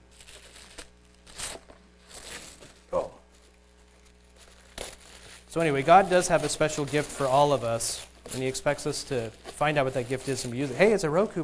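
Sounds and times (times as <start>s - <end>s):
gift wrapping paper being torn open: 0.0s - 11.4s
person exclaiming: 2.9s - 3.2s
speech: 5.5s - 11.4s.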